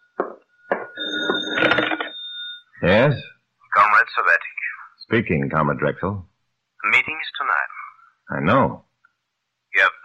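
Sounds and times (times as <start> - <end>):
telephone bell ringing: 0.7 - 2.7
speech: 2.8 - 3.3, 4.0 - 6.3, 8.3 - 8.8, 9.8 - 10.0.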